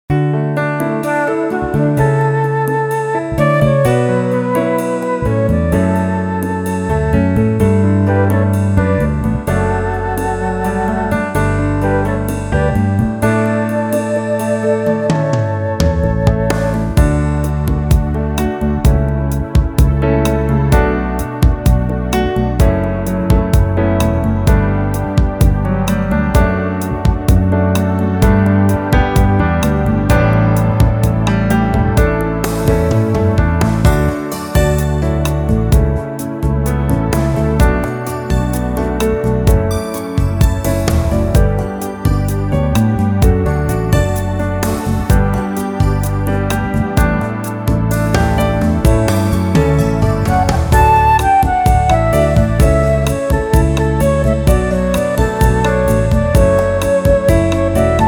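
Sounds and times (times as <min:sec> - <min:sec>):
instrumental music: 0:00.0 - 0:58.0.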